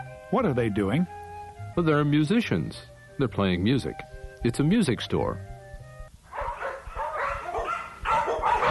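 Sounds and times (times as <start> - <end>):
speech: 0.3 - 1.2, 1.7 - 5.5
dog barking in a pet shop: 6.3 - 8.6.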